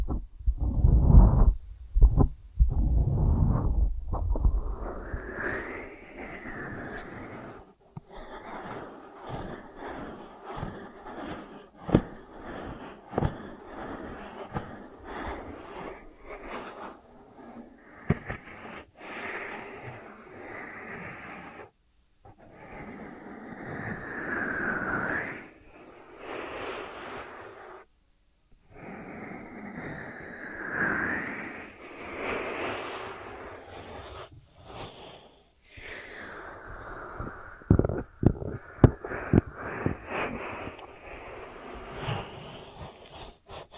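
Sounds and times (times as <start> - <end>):
heavy low rumbling thump: 0.0 - 4.8
ear treatment crackling, brushing and rubbing textures: 0.0 - 27.9, 28.8 - 43.7.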